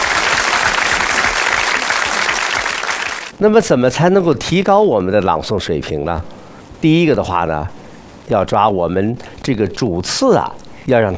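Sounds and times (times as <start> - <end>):
audience applause: 0.0 - 3.3
speech: 3.4 - 11.1.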